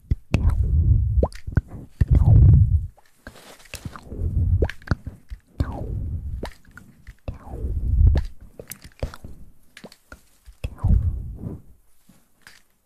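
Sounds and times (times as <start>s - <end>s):
fast wet mouth sounds: 0.0s - 3.0s, 3.9s - 9.2s
low breathy rumbling: 0.3s - 3.0s, 4.0s - 8.6s, 10.7s - 11.8s.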